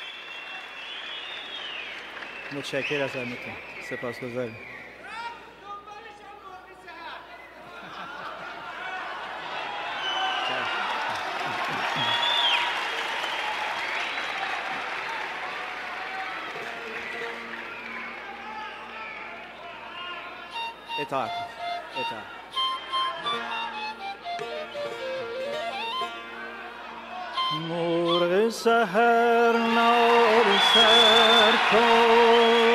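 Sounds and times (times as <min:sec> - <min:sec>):
long audience applause at concert: 0:00.0 - 0:03.6, 0:08.5 - 0:19.4, 0:30.1 - 0:32.7
speech: 0:02.5 - 0:04.8, 0:21.1 - 0:22.4, 0:27.6 - 0:32.6
laughter: 0:07.6 - 0:09.5, 0:11.0 - 0:12.4.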